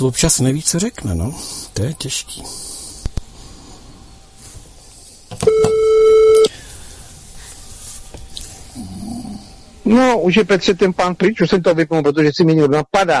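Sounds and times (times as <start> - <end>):
speech: 0.0 - 2.8, 9.9 - 13.1
quiet hiss: 0.0 - 13.1
telephone call tone: 5.4 - 6.5.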